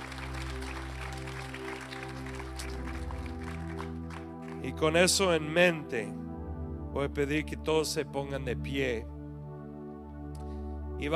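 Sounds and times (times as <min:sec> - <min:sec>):
audience applause: 0:00.0 - 0:04.6
speech: 0:04.6 - 0:06.2, 0:06.9 - 0:09.1, 0:11.0 - 0:11.1.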